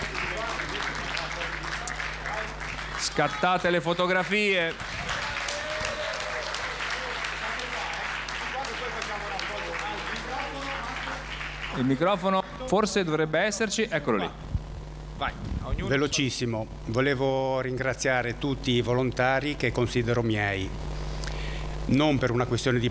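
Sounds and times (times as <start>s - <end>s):
audience applause: 0.0s - 12.7s
speech: 3.2s - 5.0s, 11.8s - 14.4s, 15.2s - 20.9s, 21.9s - 22.8s.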